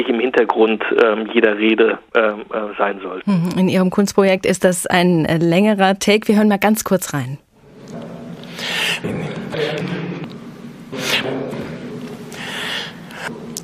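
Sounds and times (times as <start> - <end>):
speech: 0.0 - 7.5, 8.9 - 10.0
sharp inhaled breaths and gasps: 8.4 - 9.0, 12.3 - 13.3.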